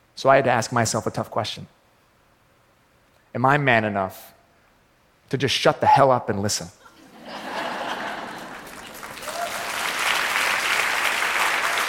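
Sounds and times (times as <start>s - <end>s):
speech: 0.2s - 1.8s, 3.4s - 4.4s, 5.3s - 6.8s
laughter: 6.8s - 9.6s
audience applause: 7.8s - 11.8s.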